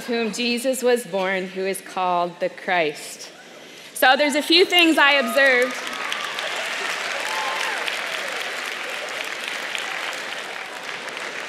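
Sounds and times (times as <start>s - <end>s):
speech: 0.0s - 3.4s, 4.0s - 5.9s
people cheering: 4.8s - 11.4s
applause from a gathered group: 5.1s - 11.4s.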